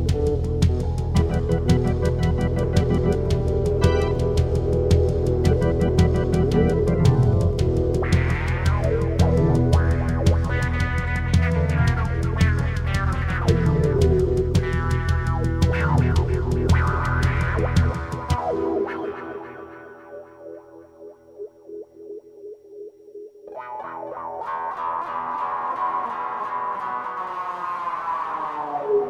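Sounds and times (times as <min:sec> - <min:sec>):
instrumental guitar music: 0:00.0 - 0:22.5, 0:23.4 - 0:29.0.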